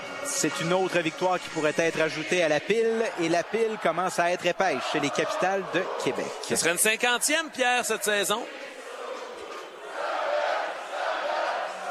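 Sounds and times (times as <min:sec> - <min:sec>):
stadium crowd cheering at baseball game at Stade Canac: 0:00.0 - 0:11.8
speech: 0:00.4 - 0:08.8.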